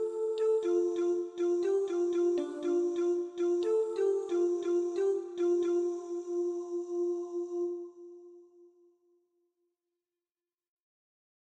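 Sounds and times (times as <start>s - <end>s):
soprano singing: 0.0s - 8.3s.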